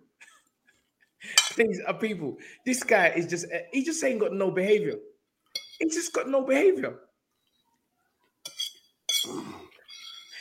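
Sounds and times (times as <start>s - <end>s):
plate and knife clinking while eating: 1.4s - 1.6s, 5.5s - 6.0s, 8.4s - 10.3s
speech: 1.6s - 5.1s, 5.8s - 7.1s.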